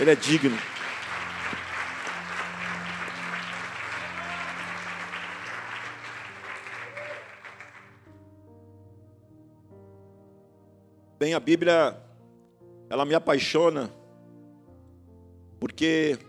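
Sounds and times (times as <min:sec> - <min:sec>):
speech: 0:00.0 - 0:00.7, 0:11.2 - 0:12.0, 0:12.9 - 0:14.0, 0:15.6 - 0:16.2
audience applause: 0:00.0 - 0:08.1.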